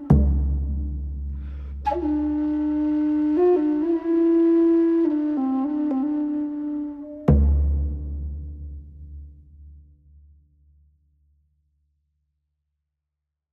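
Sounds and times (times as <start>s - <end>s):
flute: 0.0s - 8.2s.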